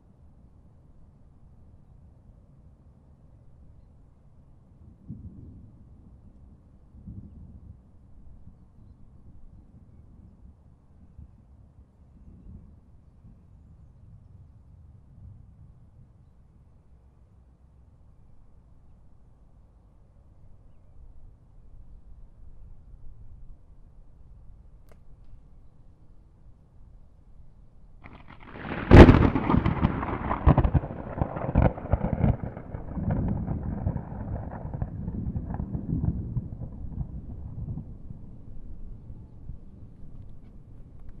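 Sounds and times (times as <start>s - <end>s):
violent thunderstorm: 28.0s - 41.0s.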